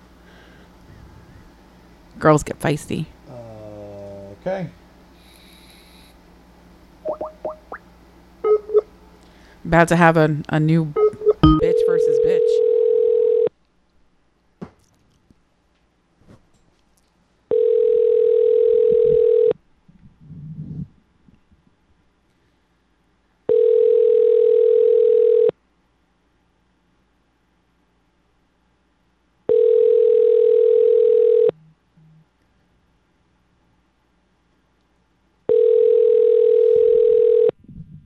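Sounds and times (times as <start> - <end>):
speech: 2.2 - 3.2, 4.4 - 4.8, 9.7 - 11.0
unanswered phone call ringback tone: 11.4 - 13.5, 17.5 - 19.5, 23.5 - 25.5, 29.5 - 31.5, 35.5 - 37.6.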